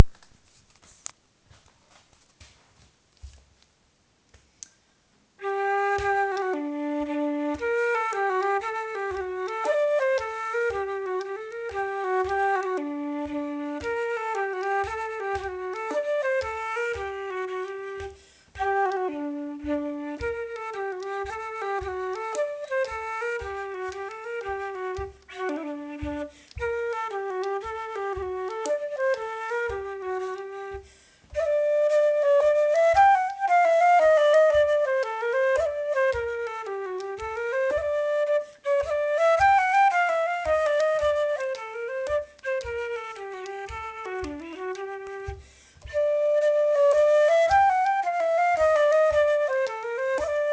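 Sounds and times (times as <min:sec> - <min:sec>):
Swedish jämtpolska folk tune from Härjedalen: 0:05.4 - 0:50.5.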